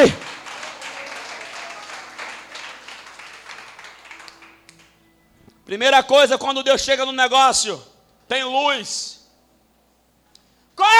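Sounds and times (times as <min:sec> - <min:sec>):
speech: 0:00.0 - 0:00.2, 0:05.7 - 0:09.2
audience applause: 0:00.0 - 0:04.9.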